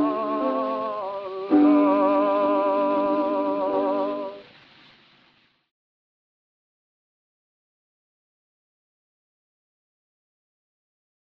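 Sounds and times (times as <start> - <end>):
gramophone playing: 0.0 - 4.4.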